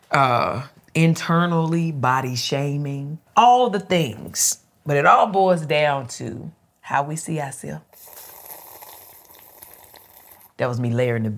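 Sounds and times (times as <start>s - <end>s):
speech: 0.1s - 8.1s, 10.6s - 11.3s
loud sipping of a drink: 7.9s - 10.6s.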